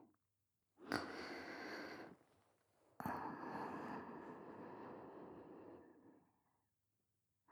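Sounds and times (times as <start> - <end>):
sleep breathing: 0.9 - 2.4, 3.0 - 5.8.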